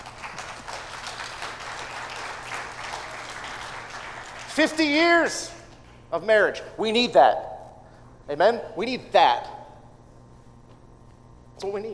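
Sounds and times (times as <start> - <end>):
audience applauding: 0.0 - 4.9
speech: 4.6 - 7.5, 8.3 - 9.6, 11.6 - 11.9.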